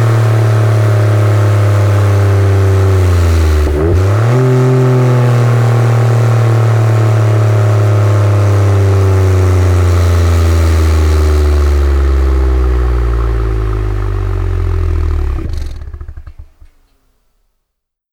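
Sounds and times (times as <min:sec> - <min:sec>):
Toyota Yaris racing car engine with Remus exhaust: 0:00.0 - 0:16.7.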